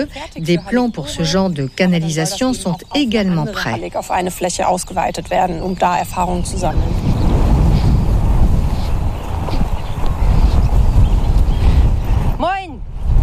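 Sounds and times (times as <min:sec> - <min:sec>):
speech: 0:00.0 - 0:07.1
strong wind: 0:00.0 - 0:13.2.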